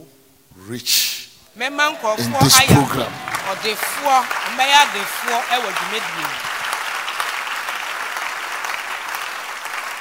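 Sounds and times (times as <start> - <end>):
speech: 0.6 - 6.4
raised voice calling out: 2.2 - 3.6
audience clapping: 2.2 - 10.0.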